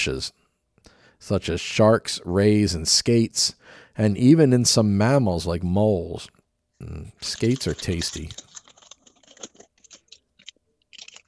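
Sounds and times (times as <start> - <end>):
speech: 0.0 - 0.4, 1.2 - 8.5
person noisily chewing food: 7.3 - 11.2.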